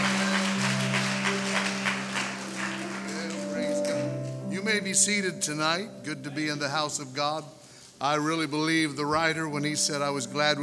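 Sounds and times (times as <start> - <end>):
church audience applause at Abundant Life Center welcoming Pastor Sullivan: 0.0 - 4.2
speech: 4.7 - 10.6.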